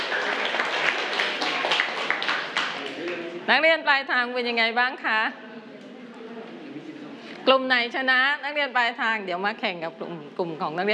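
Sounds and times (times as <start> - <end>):
group of children clapping in a classroom: 0.0 - 3.3
speech: 3.5 - 5.4, 7.5 - 10.9.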